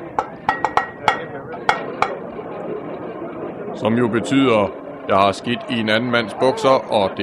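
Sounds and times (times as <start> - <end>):
knocking rescue signal: 0.0 - 2.2
speech: 1.4 - 2.2, 3.8 - 7.2.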